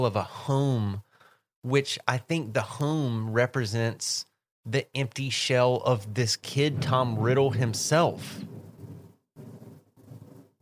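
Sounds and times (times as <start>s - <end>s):
speech: 0.0s - 8.5s
thunder rumbling: 6.4s - 10.6s.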